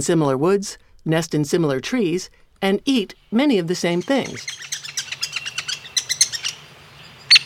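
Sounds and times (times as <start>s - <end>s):
speech: 0.0s - 4.8s
woodpecker calling: 3.1s - 7.4s.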